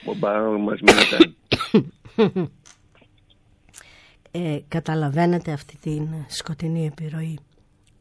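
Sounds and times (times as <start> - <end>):
speech: 0.1 - 2.6, 4.4 - 7.5
person coughing after swallowing the wrong way: 0.9 - 2.4.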